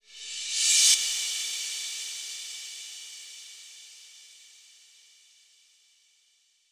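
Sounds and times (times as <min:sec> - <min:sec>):
reverse cymbal crash: 0:00.0 - 0:04.8.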